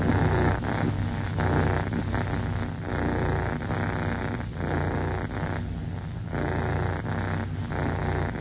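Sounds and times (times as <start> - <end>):
cat purring: 0.0 - 8.4.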